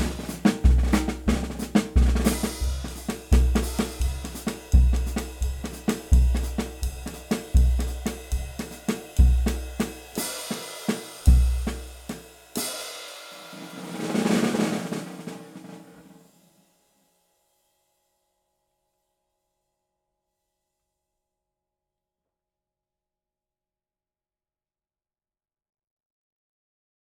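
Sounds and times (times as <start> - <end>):
maracatu amaxixado drum ensemble: 0.0 - 12.7, 13.4 - 16.2.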